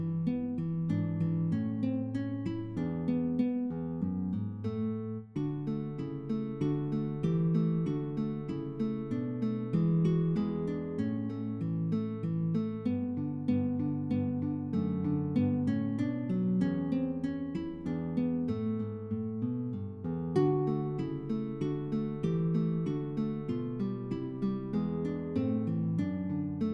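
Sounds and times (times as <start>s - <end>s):
solo guitar piece: 0.0s - 26.7s.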